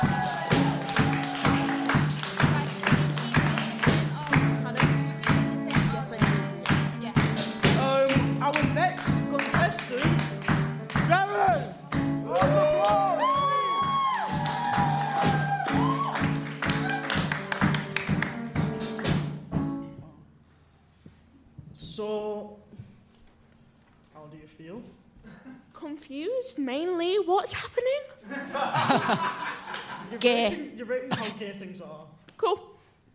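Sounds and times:
whoops and cheering: 0:00.0 - 0:02.1, 0:11.5 - 0:17.3
crowd clapping: 0:00.0 - 0:19.2
speech: 0:26.0 - 0:33.1
laughter: 0:28.2 - 0:30.5.

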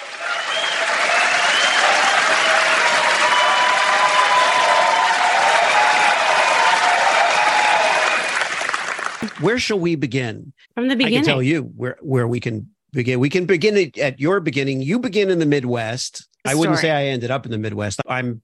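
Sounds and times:
crowd applause: 0:00.0 - 0:09.7
speech: 0:09.4 - 0:18.4.

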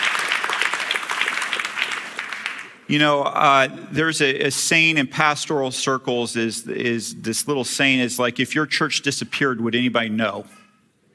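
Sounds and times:
audience applause: 0:00.0 - 0:02.8
speech: 0:02.9 - 0:10.6.

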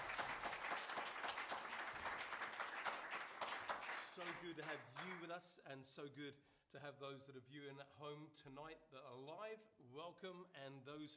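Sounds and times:
audience clapping: 0:00.0 - 0:05.3
speech: 0:04.2 - 0:11.1.

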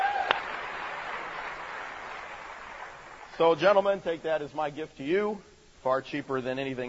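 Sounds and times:
audience applause: 0:00.0 - 0:03.4
speech: 0:03.4 - 0:06.8.

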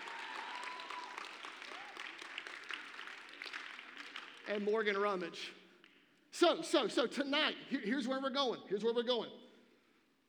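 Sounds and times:
audience clapping: 0:00.0 - 0:06.1
speech: 0:04.5 - 0:05.6, 0:06.4 - 0:09.4.

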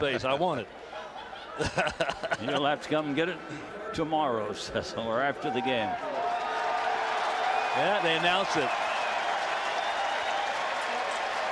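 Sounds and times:
speech: 0:00.0 - 0:01.0, 0:01.6 - 0:06.2, 0:07.8 - 0:08.8
laughter: 0:00.9 - 0:03.0
stadium crowd standing ovation: 0:05.1 - 0:11.4.

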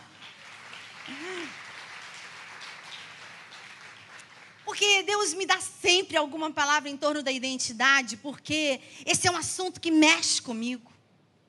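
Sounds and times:
crowd applauding: 0:00.0 - 0:04.7
speech: 0:04.8 - 0:10.9.

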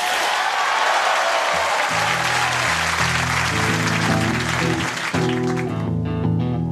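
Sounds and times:
audience applause and cheering welcoming a band: 0:00.0 - 0:06.0
band playing amplified music with guitar chords: 0:01.9 - 0:06.6.

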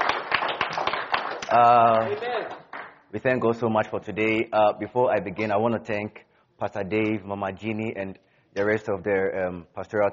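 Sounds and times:
audience applause: 0:00.0 - 0:02.9
speech: 0:01.5 - 0:10.1.

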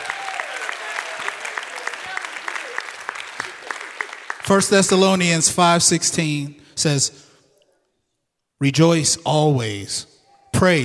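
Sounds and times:
audience applause: 0:00.0 - 0:05.1
speech: 0:04.5 - 0:07.2, 0:08.6 - 0:10.8.

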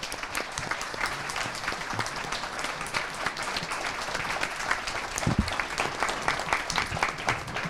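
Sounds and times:
audience applause: 0:00.0 - 0:07.6.

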